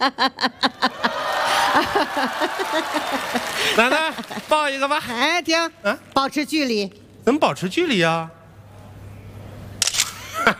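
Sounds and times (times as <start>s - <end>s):
speech: 0.0s - 0.8s, 2.2s - 8.4s
laughter: 0.0s - 4.9s, 10.2s - 10.5s
single-lens reflex camera shutter firing: 9.8s - 10.2s.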